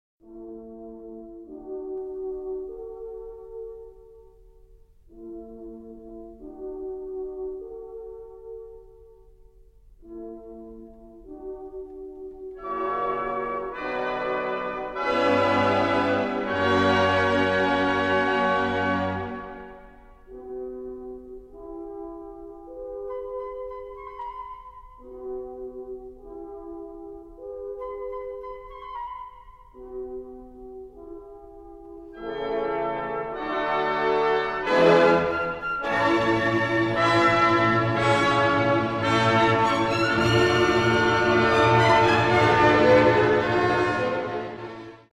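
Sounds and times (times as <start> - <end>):
violin concerto with orchestra in B minor: 12.6 - 19.6, 32.2 - 45.1.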